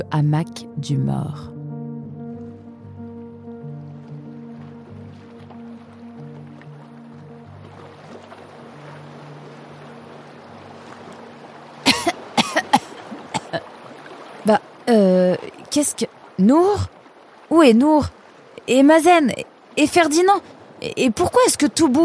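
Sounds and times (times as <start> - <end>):
speech: 0.0 - 1.5, 15.8 - 16.9, 17.5 - 22.0
paddle working the water from a small boat on the ocean: 2.2 - 22.0
sharp splashing knocks: 3.9 - 9.3, 10.7 - 15.8.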